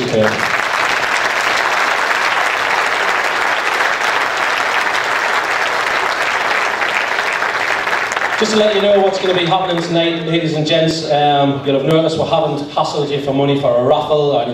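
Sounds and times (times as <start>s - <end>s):
audience applause: 0.0s - 10.3s
speech: 0.1s - 0.5s, 8.4s - 14.5s.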